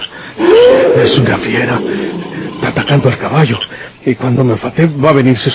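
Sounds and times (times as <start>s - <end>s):
wild beast roaring: 0.4s - 2.9s
speech: 1.3s - 2.2s, 2.9s - 5.5s.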